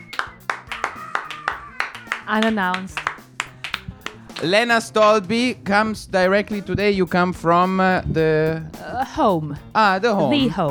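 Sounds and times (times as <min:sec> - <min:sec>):
audience round of applause: 0:00.0 - 0:04.7
laughter: 0:00.0 - 0:07.6
speech: 0:02.3 - 0:03.1, 0:04.4 - 0:10.6.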